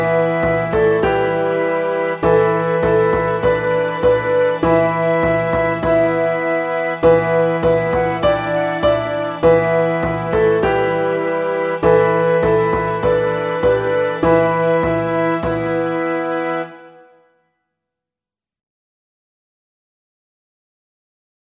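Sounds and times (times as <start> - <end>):
medieval magic music: 0.0 - 17.2.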